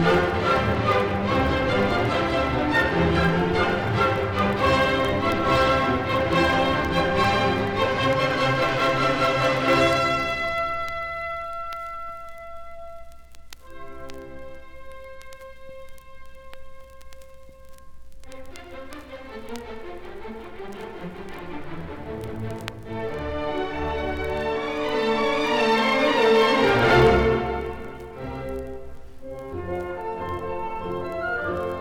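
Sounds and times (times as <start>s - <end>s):
allegro classical piece: 0.0s - 11.8s, 18.3s - 31.7s.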